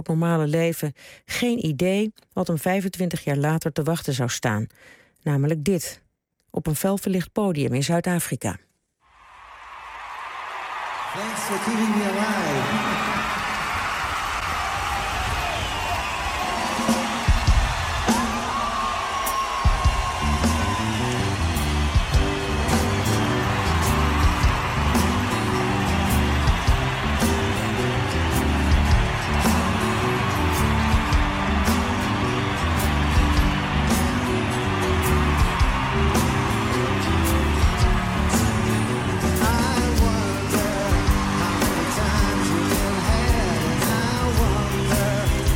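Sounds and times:
speech: 0.0 - 8.7, 11.1 - 13.2
ecstatic concert audience cheering: 9.1 - 45.5.

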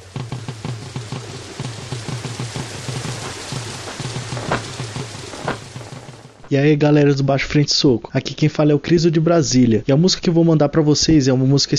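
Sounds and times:
rhythmic low thumping pulses: 0.0 - 6.5
steady rain falling: 0.0 - 6.5
speech: 6.5 - 11.7.

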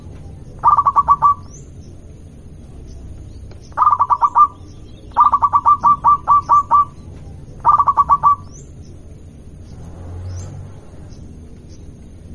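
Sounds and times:
zebra dove cooing song: 0.0 - 1.6, 3.8 - 8.6.

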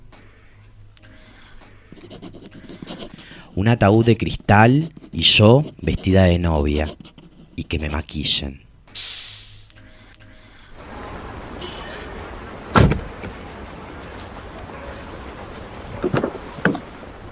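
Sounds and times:
speech: 1.9 - 8.6
car driven by a woman pulling up: 10.8 - 17.3
car door opening: 12.7 - 13.4, 15.9 - 17.0.

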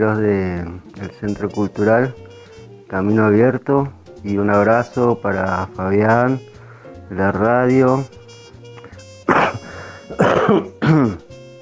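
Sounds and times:
speech: 0.0 - 2.3, 2.9 - 6.5, 7.1 - 8.2, 10.5 - 11.2
man coughing: 9.3 - 11.3.

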